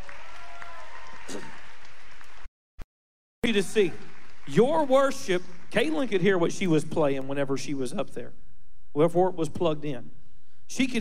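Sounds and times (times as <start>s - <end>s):
audience applause for a musician: 0.0s - 2.5s, 3.4s - 6.2s
speech: 3.5s - 11.0s.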